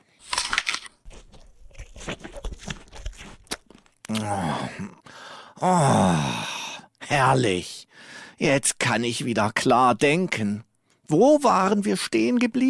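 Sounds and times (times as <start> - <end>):
crunchy bites and chewing on an apple: 0.0 - 4.3
person groaning and moaning contentedly: 4.1 - 5.0, 5.6 - 6.8
speech: 4.1 - 5.0, 5.6 - 6.4, 7.1 - 7.8, 8.4 - 12.6.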